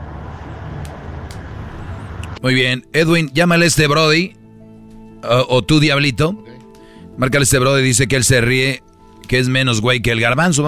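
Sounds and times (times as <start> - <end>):
steady roar of cars passing on a freeway: 0.0 - 2.4
speech: 2.4 - 4.4, 5.2 - 6.5, 7.2 - 10.6.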